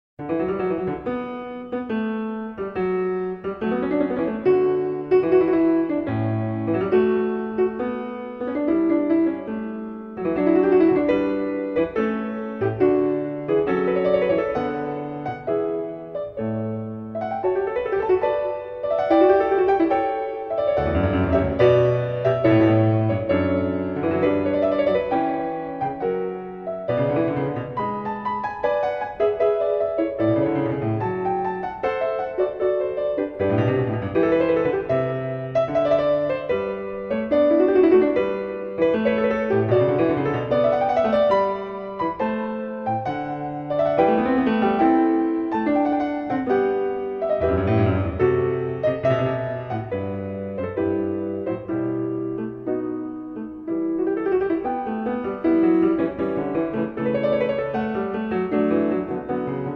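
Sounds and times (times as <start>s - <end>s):
keyboard fugue in D major: 0.2s - 59.7s.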